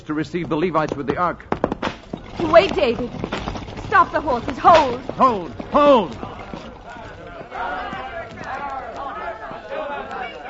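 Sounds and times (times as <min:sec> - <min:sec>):
speech: 0:00.0 - 0:01.6, 0:02.4 - 0:06.3
angry mob shouting and jeering: 0:06.1 - 0:10.4.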